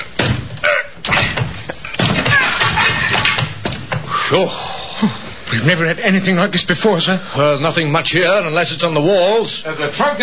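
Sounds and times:
wooden door splintering and banging open: 0.2s - 4.0s
speech: 4.3s - 10.2s.

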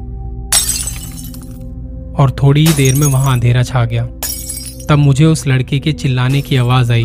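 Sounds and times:
glass shattering: 0.5s - 1.6s, 2.6s - 3.4s, 4.2s - 5.1s
speech: 2.2s - 4.2s, 4.9s - 7.0s.

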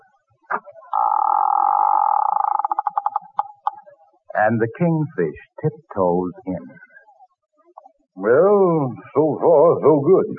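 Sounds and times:
front door slowly creaking open: 0.6s - 3.4s
speech: 4.4s - 6.8s, 8.2s - 10.3s.

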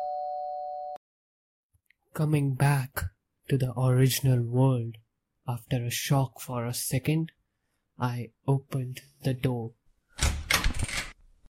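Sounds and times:
doorbell ringing: 0.0s - 1.0s
speech: 2.2s - 7.4s, 8.0s - 9.8s.

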